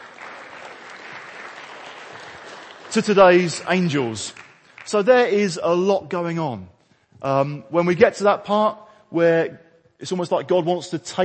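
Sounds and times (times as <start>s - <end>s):
audience applause: 0.0s - 5.1s
speech: 2.9s - 11.2s.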